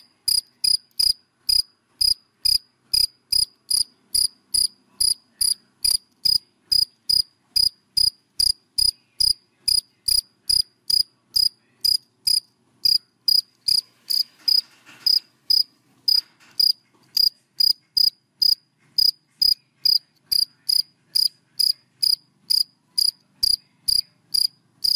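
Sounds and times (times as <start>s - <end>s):
cricket chirping: 0.0s - 24.9s
faint rustling: 13.6s - 17.2s.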